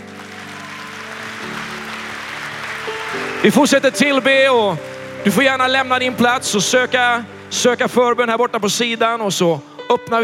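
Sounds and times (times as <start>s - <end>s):
crowd applauding: 0.0s - 8.0s
sustained musical tones: 1.2s - 9.4s
speech: 3.4s - 10.2s.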